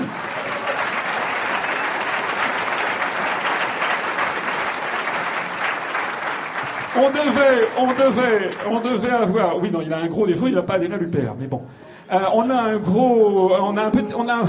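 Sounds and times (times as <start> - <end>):
audience applause: 0.0 - 9.3
speech: 7.0 - 14.4.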